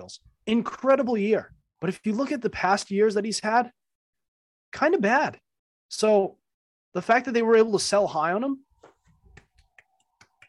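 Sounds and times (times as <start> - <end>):
speech: 0.1 - 3.8, 4.7 - 8.6
soft sparse golf claps: 8.8 - 10.4.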